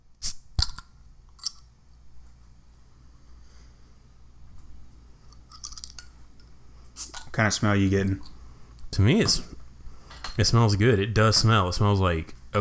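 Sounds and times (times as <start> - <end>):
whisky bottle opened: 0.2 - 1.6, 6.9 - 7.4
speech: 7.4 - 8.4, 9.0 - 9.6, 10.4 - 12.5.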